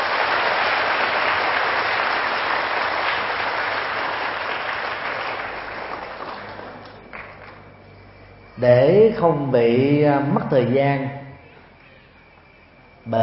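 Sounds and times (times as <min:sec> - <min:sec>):
audience applause: 0:00.0 - 0:07.7
speech: 0:08.6 - 0:11.2.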